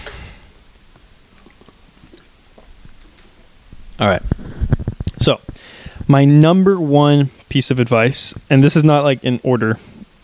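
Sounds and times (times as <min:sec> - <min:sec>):
person drinking water with soft gulps: 0:01.3 - 0:03.2
speech: 0:04.0 - 0:04.4, 0:05.2 - 0:05.5, 0:06.1 - 0:09.9.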